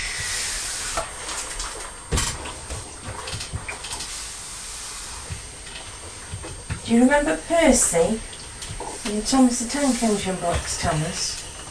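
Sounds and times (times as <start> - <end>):
steam iron hissing: 0.0 - 1.6, 4.0 - 6.3, 8.8 - 11.6
speech: 6.9 - 8.3, 9.1 - 11.4.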